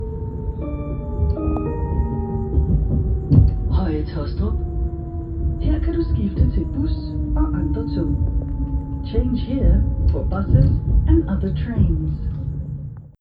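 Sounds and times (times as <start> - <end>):
railway station jingle: 0.0 - 13.0.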